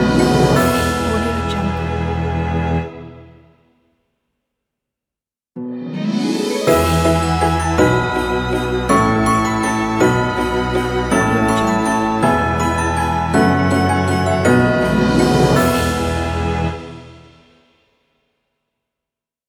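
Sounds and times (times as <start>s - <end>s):
joyful christmas logo jingle: 0.0s - 3.4s, 5.8s - 17.4s.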